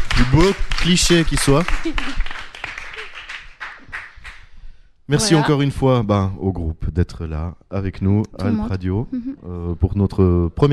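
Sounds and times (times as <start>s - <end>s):
scattered audience applause for two photographers: 0.0s - 4.5s
speech: 0.2s - 2.3s, 5.1s - 10.7s.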